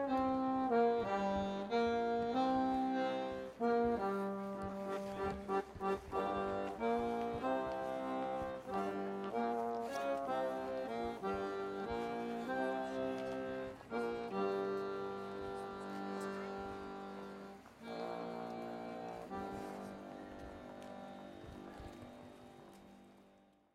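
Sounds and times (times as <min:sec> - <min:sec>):
street musician playing: 0:00.0 - 0:23.6.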